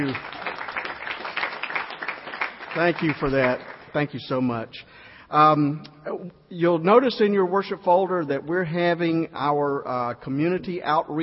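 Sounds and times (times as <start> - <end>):
speech: 0.0 - 0.3, 2.8 - 11.2
crowd applauding: 0.0 - 4.2.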